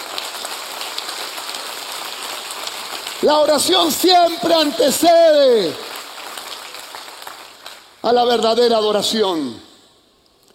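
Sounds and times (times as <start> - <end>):
crowd clapping: 0.0 - 9.5
speech: 3.2 - 5.8, 8.0 - 9.7.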